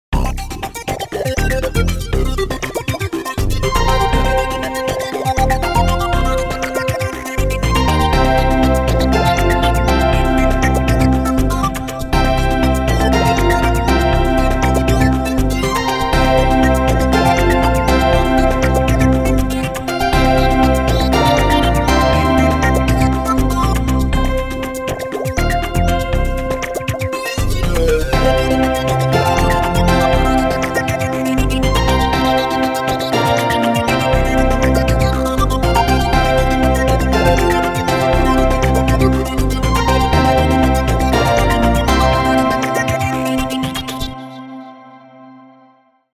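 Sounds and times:
electronic EDM music: 0.2 - 44.8.

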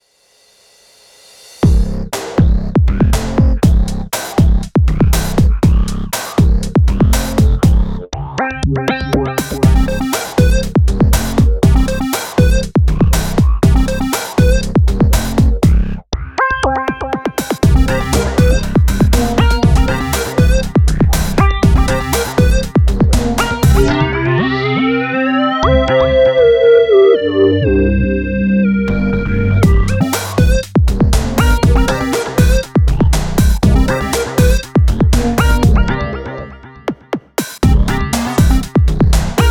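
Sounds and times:
electronic EDM music: 1.6 - 7.8, 9.4 - 15.8, 16.4 - 39.4.

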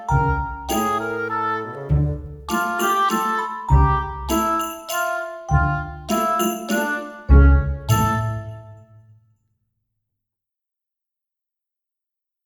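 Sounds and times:
slow comic clarinet: 0.0 - 8.8.

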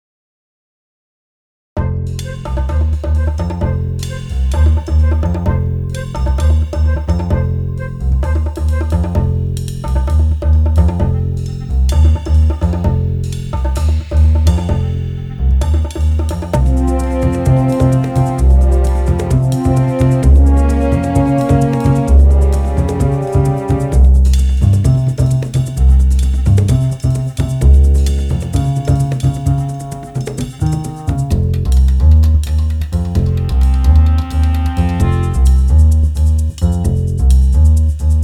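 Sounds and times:
bongo version of tension music for a variety show: 2.1 - 38.2.

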